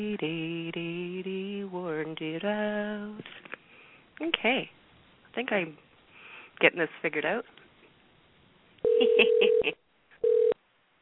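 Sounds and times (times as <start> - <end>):
speech: 0.0 - 1.0, 2.0 - 3.4, 4.2 - 5.8, 6.6 - 7.6
telephone ringing tone: 8.8 - 10.6.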